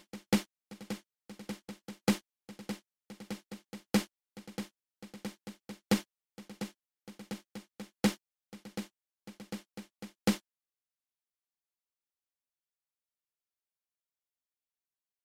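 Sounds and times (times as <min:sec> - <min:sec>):
double ratamacue drum rudiment played open close open: 0:00.0 - 0:10.4.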